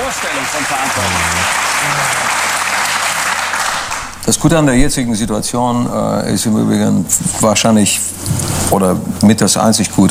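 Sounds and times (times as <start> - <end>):
audience applause: 0.0 - 4.2
speech: 0.5 - 2.4, 4.2 - 10.0
faint voices murmuring: 0.9 - 2.6.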